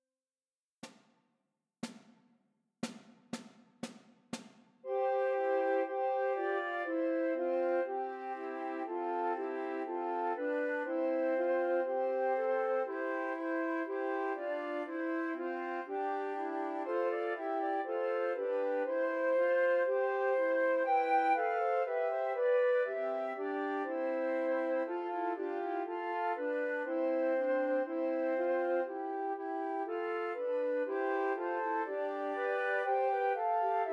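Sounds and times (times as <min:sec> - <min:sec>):
trio for three descant recorders: 0:04.9 - 0:33.9.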